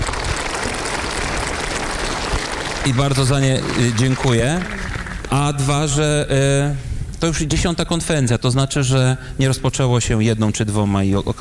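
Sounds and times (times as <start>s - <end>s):
audience applause: 0.0s - 5.6s
speech: 2.8s - 11.4s.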